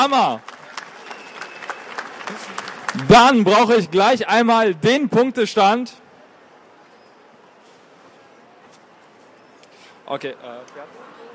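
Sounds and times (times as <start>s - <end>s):
speech: 0.0s - 0.5s, 2.3s - 6.0s, 10.1s - 11.1s
audience applause: 0.0s - 3.5s.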